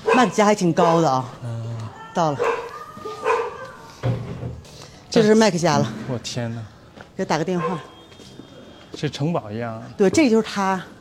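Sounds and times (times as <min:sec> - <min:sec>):
dog barking: 0:00.0 - 0:01.2, 0:02.4 - 0:03.7, 0:07.5 - 0:08.0
speech: 0:00.2 - 0:01.4, 0:02.2 - 0:02.5, 0:05.2 - 0:07.9, 0:09.0 - 0:10.9.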